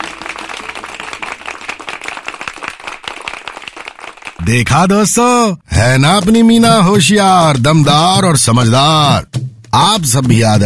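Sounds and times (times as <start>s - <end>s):
loud applause: 0.0s - 4.8s
speech: 4.5s - 10.6s.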